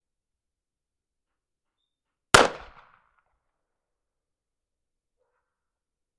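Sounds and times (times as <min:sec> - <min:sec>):
gunshot: 0:02.4 - 0:02.9.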